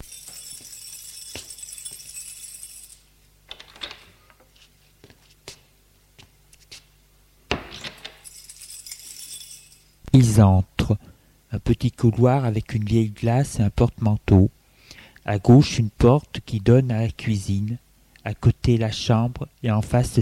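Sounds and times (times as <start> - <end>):
keys jangling: 0.0 - 4.3, 7.8 - 10.0
speech: 10.4 - 14.6, 15.2 - 20.2.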